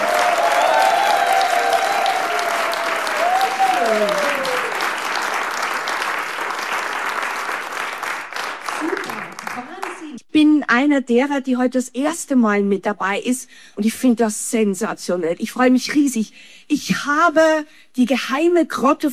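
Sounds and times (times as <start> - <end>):
audience applause: 0.0 - 10.2
speech: 10.8 - 19.1.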